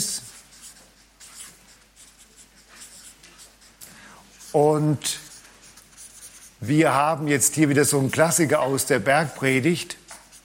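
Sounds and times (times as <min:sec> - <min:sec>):
handwriting with a pen on paper: 0:00.0 - 0:03.8, 0:04.4 - 0:06.7
speech: 0:04.5 - 0:05.2, 0:06.6 - 0:10.0.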